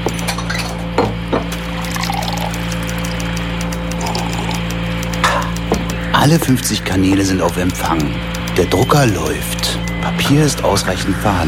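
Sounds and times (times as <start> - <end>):
constant low electrical hum: 0.0 - 11.4
coffee pouring into a cup: 1.5 - 3.2
speech: 6.2 - 11.4.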